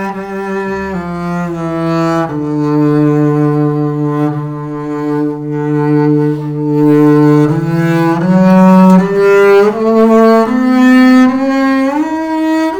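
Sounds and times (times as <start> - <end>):
antique double bass: 0.0 - 12.7.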